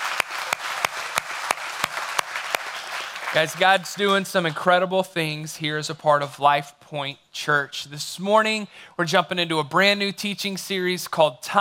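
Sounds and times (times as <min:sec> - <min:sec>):
audience applause: 0:00.0 - 0:04.0
speech: 0:03.3 - 0:11.6.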